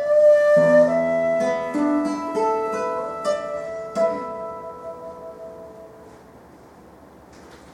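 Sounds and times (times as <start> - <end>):
shakuhachi at a primary school music appreciation concert: 0.0 - 6.0.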